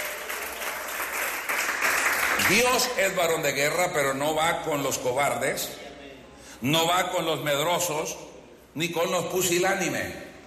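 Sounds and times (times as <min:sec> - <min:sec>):
church congregation clapping: 0:00.0 - 0:03.4
speech: 0:02.5 - 0:05.8, 0:06.6 - 0:10.2.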